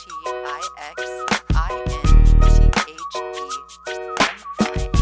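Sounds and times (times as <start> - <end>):
happy whistling: 1.2 - 5.0.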